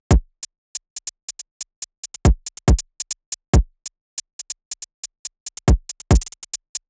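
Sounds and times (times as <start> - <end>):
kick drum: 0.0 - 0.3, 2.2 - 2.9, 3.6 - 3.8, 5.6 - 6.3.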